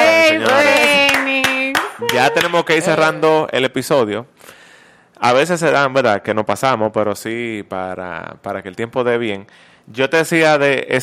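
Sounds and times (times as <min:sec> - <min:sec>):
applause: 0:00.0 - 0:02.7
speech: 0:02.2 - 0:04.6, 0:05.2 - 0:11.0.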